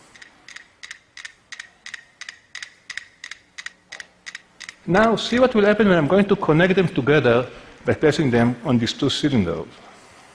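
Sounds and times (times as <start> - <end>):
five metronomes clicking out of phase: 0.0 - 6.1
speech: 4.9 - 9.9.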